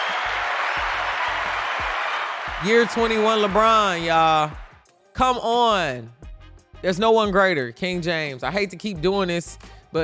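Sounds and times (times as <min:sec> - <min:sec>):
clapping: 0:00.0 - 0:04.8
speech: 0:02.6 - 0:04.6, 0:05.2 - 0:06.2, 0:06.8 - 0:10.0.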